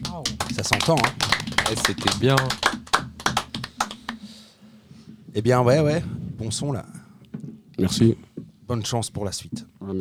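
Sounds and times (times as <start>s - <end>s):
hands clapping: 0.0s - 4.3s
speech: 0.2s - 2.8s, 5.3s - 6.9s, 7.8s - 9.9s.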